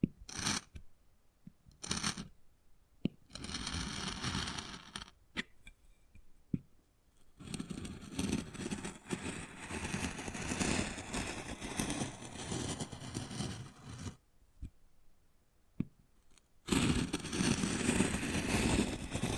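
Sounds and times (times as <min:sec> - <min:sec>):
wood carving scraping and tapping: 0:00.3 - 0:00.7, 0:01.8 - 0:02.3, 0:03.3 - 0:05.1, 0:07.4 - 0:14.2, 0:16.7 - 0:19.3.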